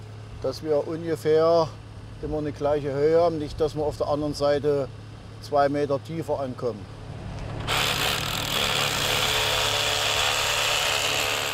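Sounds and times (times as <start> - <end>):
speech: 0.4 - 7.0
power drill boring holes: 7.6 - 11.5.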